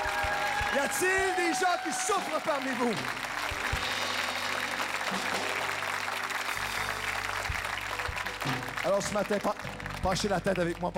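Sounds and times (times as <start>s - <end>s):
congregation applause during a church service: 0.0s - 10.9s
speech: 0.8s - 3.5s, 8.8s - 10.9s.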